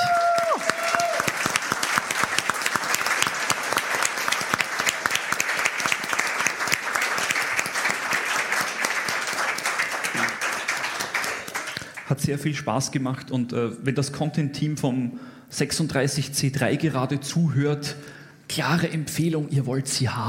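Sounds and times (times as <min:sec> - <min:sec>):
sustained applause from a sizable audience: 0:00.0 - 0:12.1
speech: 0:12.3 - 0:20.2.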